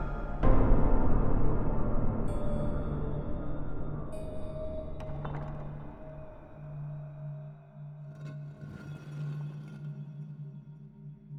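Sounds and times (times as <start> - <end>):
ambience: 0.0 - 7.0.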